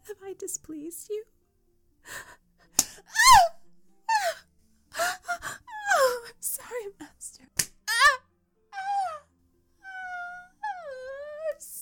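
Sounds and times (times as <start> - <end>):
speech: 0.3 - 1.4
woman gasping and moaning: 2.1 - 6.9, 7.9 - 11.7.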